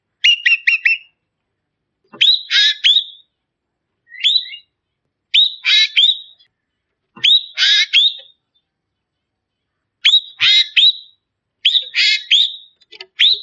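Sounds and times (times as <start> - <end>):
Ekek bird calling: 0.2 - 1.2, 2.1 - 3.4, 4.1 - 9.2, 10.0 - 13.4.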